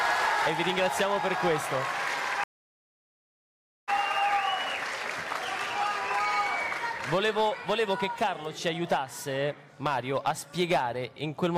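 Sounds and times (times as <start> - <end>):
audience applause: 0.0 - 2.4, 3.9 - 7.6
speech: 0.4 - 2.0, 7.1 - 11.5.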